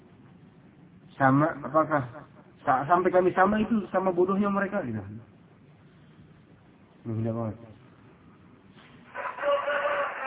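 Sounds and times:
low noise: 0.0s - 10.2s
speech: 1.2s - 5.3s, 7.0s - 7.8s
rooster crowing: 9.0s - 10.2s.

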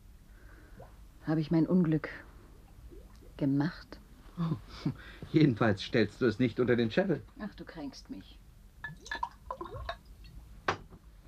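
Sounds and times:
speech: 1.3s - 2.3s, 3.4s - 9.2s
whisky pouring into a glass: 8.8s - 10.4s.

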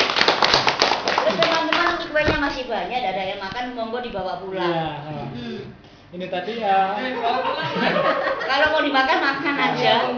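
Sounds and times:
audience clapping for a host at a community discussion gathering: 0.0s - 2.2s
speech: 2.7s - 10.1s
laughter: 7.0s - 10.1s.

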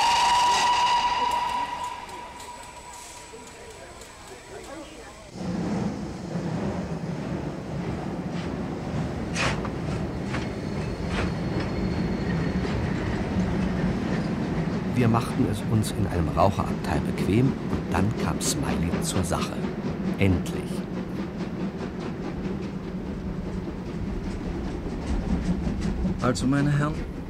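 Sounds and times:
train squeals and clanks: 0.0s - 4.1s, 9.8s - 14.5s
express train tonal whistling and hissing: 0.0s - 5.4s, 9.4s - 14.6s
express train to Edinburgh wheels and carriages rumbling: 0.0s - 27.2s
speech: 15.0s - 21.3s, 26.2s - 27.2s.

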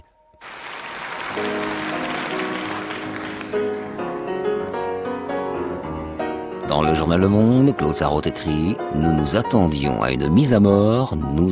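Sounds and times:
concert audience applauding: 0.0s - 4.8s
speech: 6.8s - 11.4s.

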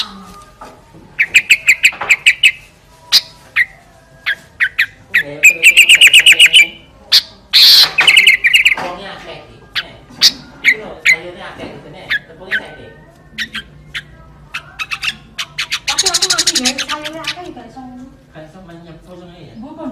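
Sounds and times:
sooty-headed bulbul chattering: 1.2s - 8.8s, 12.0s - 17.6s.

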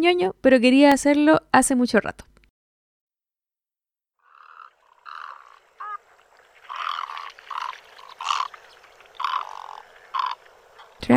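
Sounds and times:
speech: 0.0s - 2.3s
great egret croaking calls: 4.2s - 11.1s.

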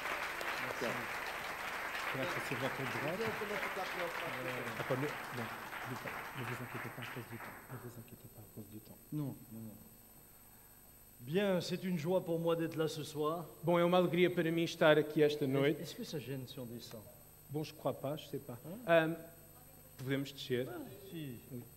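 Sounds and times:
church congregation clapping: 0.0s - 8.0s
speech: 0.8s - 1.2s, 2.1s - 10.0s, 11.2s - 19.4s, 20.0s - 21.7s.

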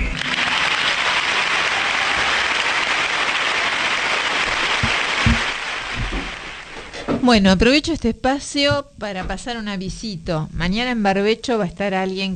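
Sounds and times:
audience applause for an interviewee: 0.0s - 6.9s
low thumps: 4.8s - 6.8s, 8.6s - 10.1s
speech: 7.2s - 12.3s.

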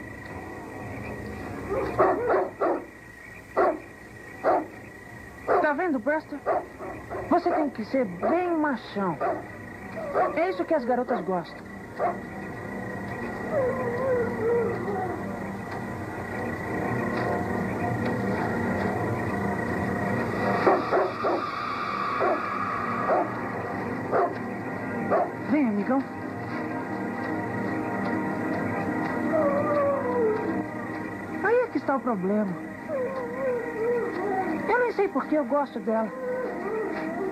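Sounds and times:
low steady hum: 0.0s - 37.3s
young dog sharp yipping barks: 1.7s - 2.8s, 3.6s - 3.8s, 10.1s - 10.4s
speech: 5.7s - 12.4s, 13.5s - 15.1s, 31.9s - 36.4s.

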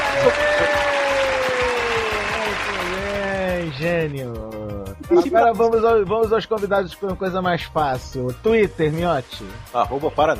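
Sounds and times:
applause for a show guest: 0.0s - 4.3s
speech: 3.8s - 10.3s.

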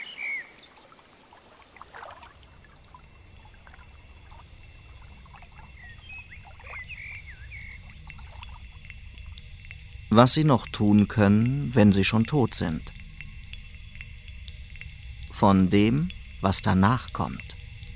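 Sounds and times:
bird chirps and whistles: 0.0s - 0.7s, 5.6s - 7.9s
wind rustling through trees by lake: 0.0s - 17.4s
speech: 10.2s - 13.0s, 15.4s - 17.6s.

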